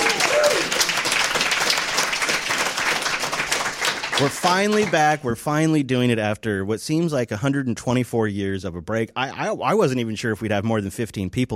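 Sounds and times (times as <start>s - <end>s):
crowd applause: 0.0s - 5.2s
speech: 4.2s - 11.5s.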